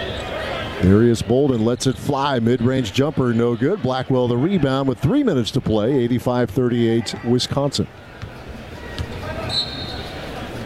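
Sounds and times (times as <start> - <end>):
arena and court noise: 0.0 - 10.6
speech: 0.8 - 8.1
referee's whistle at a Wisconsin Badgers college basketball game: 9.4 - 10.3.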